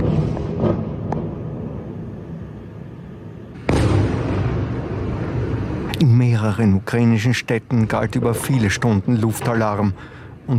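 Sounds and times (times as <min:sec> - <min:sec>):
explosions from bombing of Ukrainian cities: 0:00.0 - 0:02.2, 0:03.6 - 0:05.9
speech: 0:06.0 - 0:10.5.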